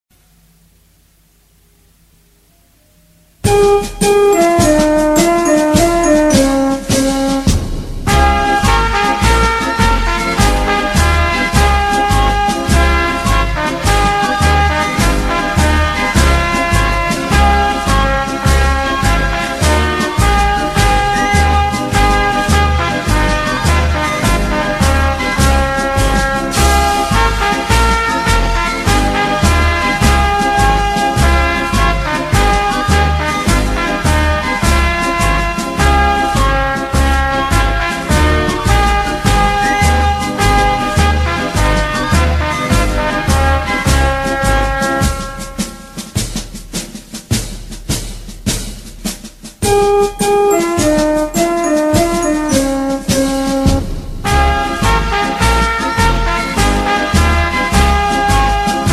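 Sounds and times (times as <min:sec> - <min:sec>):
music beat: 0:03.4 - 0:58.9.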